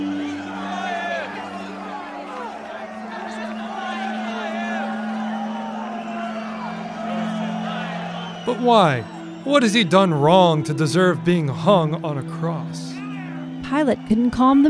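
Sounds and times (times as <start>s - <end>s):
yells and whoops: 0.0s - 9.4s, 13.0s - 13.6s
large crowd shouting: 0.0s - 14.6s
speech: 8.5s - 12.9s, 13.7s - 14.6s.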